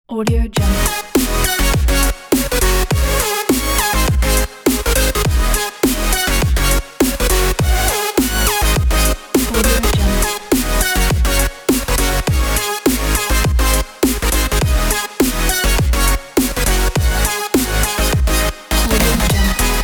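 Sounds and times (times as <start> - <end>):
glitch hop background music: 0.6 - 19.8.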